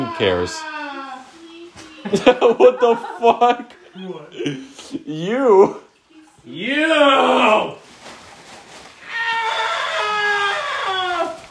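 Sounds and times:
speech: 0:00.0 - 0:00.8, 0:02.0 - 0:05.8, 0:06.4 - 0:07.8
laughter: 0:02.1 - 0:04.5
person screaming into balloons: 0:06.8 - 0:07.8, 0:09.0 - 0:11.4.

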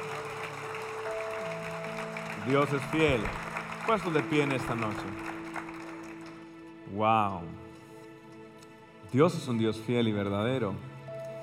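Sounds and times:
audience applause: 0:00.0 - 0:06.6
sustained musical tones: 0:00.0 - 0:09.3
speech: 0:02.4 - 0:05.3, 0:06.9 - 0:07.6, 0:09.1 - 0:10.9.

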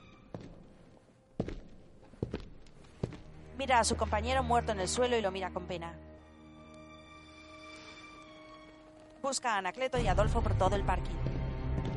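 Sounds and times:
heavy footsteps of a henchman walking through a parking garage: 0:00.0 - 0:03.6
speech: 0:03.6 - 0:06.1, 0:09.3 - 0:11.4.

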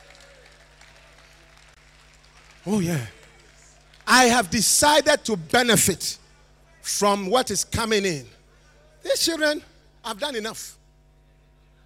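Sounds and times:
audience clapping: 0:00.0 - 0:04.9
speech: 0:02.6 - 0:03.2, 0:04.1 - 0:06.2, 0:06.8 - 0:08.4, 0:09.0 - 0:10.8.

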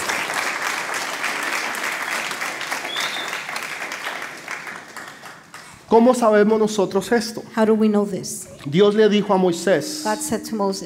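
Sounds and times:
applause: 0:00.0 - 0:05.9
speech: 0:05.9 - 0:10.8.

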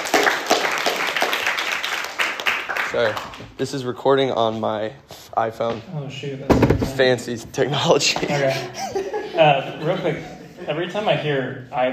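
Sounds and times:
audience applause: 0:00.0 - 0:03.4
speech: 0:02.9 - 0:11.9
laughter: 0:08.0 - 0:11.2.

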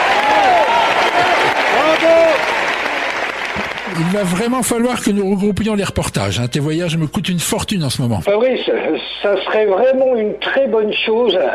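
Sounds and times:
audience applause: 0:00.0 - 0:05.2
speech: 0:04.0 - 0:11.5.

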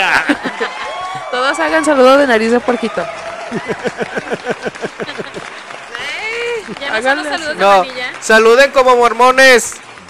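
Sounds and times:
laughter: 0:00.0 - 0:01.7, 0:03.4 - 0:07.7
audience clapping: 0:00.0 - 0:10.0
speech: 0:00.2 - 0:05.6, 0:06.4 - 0:09.8
audience whoops and cheering voices: 0:00.2 - 0:07.0.

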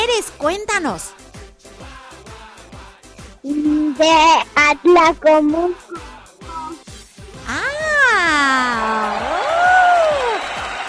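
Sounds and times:
speech: 0:00.2 - 0:01.2, 0:03.4 - 0:06.1
loud voice whooping: 0:05.8 - 0:06.8, 0:07.5 - 0:10.4
audience applauding: 0:08.7 - 0:10.8.

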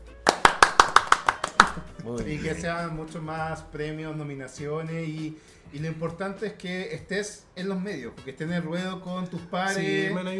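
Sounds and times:
hands clapping: 0:00.1 - 0:02.3
speech: 0:01.8 - 0:10.3.

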